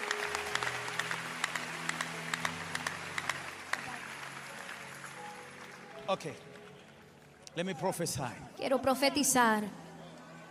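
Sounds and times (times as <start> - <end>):
audience applause: 0.0 - 8.4
speech: 6.1 - 6.6, 7.6 - 9.8.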